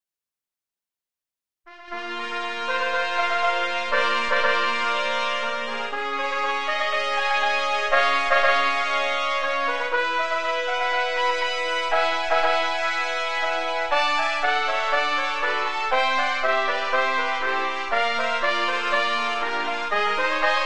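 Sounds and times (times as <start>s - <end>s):
trumpet fanfare: 1.7s - 20.6s.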